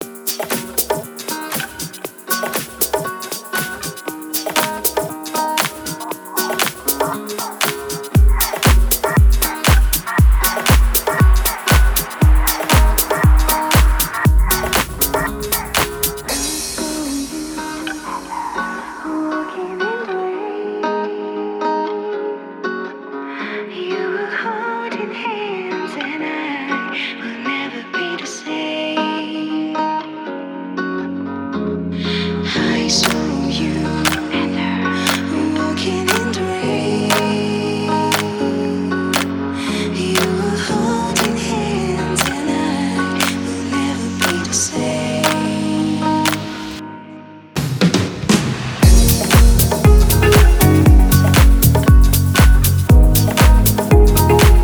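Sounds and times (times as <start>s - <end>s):
chillout music with vocals: 0.0s - 47.5s, 48.8s - 54.6s.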